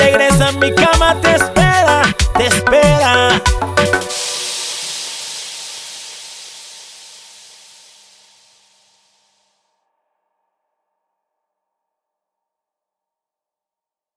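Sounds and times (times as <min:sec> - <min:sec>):
full drum kit loop: 0:00.0 - 0:07.2.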